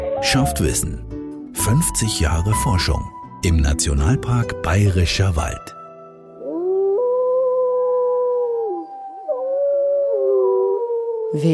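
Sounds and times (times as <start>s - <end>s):
wolves howling: 0.0s - 1.0s, 6.4s - 11.4s
speech: 0.2s - 5.8s, 11.3s - 11.5s.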